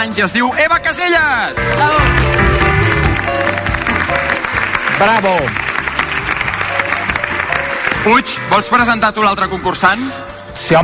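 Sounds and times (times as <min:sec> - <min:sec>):
speech: 0:00.0 - 0:02.6, 0:05.0 - 0:05.6, 0:08.0 - 0:10.8
bright musical cue: 0:01.0 - 0:10.3
audience applause: 0:01.8 - 0:08.5.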